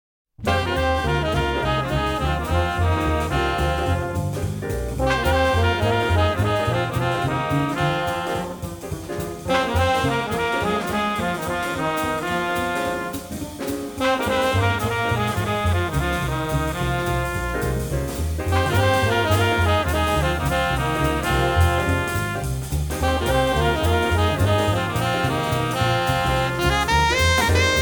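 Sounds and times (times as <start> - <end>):
minor blues music: 0.4 - 27.8.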